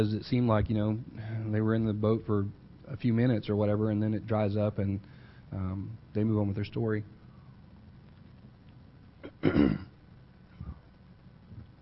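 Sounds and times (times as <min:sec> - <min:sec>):
speech: 0:00.0 - 0:07.2, 0:09.4 - 0:09.9
person coughing: 0:09.2 - 0:09.9.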